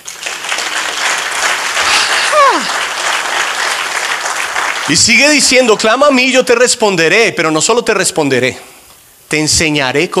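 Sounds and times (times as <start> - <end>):
loud audience applause: 0.0 - 6.0
speech: 4.9 - 10.1.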